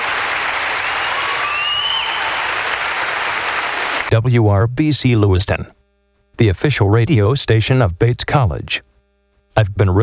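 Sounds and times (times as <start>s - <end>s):
audience applause: 0.0s - 4.1s
speech: 4.1s - 5.8s, 6.4s - 8.9s, 9.6s - 10.0s.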